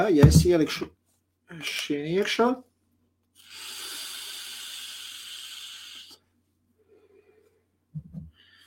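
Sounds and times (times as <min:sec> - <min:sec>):
speech: 0:00.0 - 0:02.7
whistling airflow of a vape device draw: 0:03.4 - 0:06.2
faint hisses: 0:03.4 - 0:06.3.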